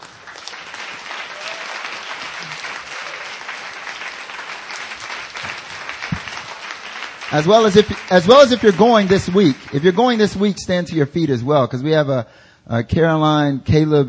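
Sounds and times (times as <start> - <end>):
church audience applauding: 0.0 - 11.0
speech: 7.3 - 14.0.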